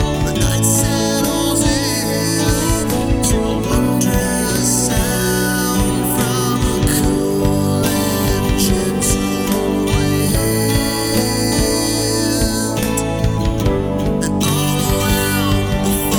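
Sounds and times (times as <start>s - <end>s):
karaoke full mix with harmony: 0.0s - 16.1s.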